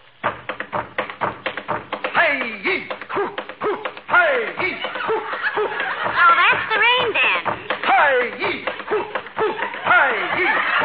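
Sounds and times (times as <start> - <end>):
hands drumming on a wooden radio cabinet: 0.2 - 10.8
laughter: 4.5 - 10.8.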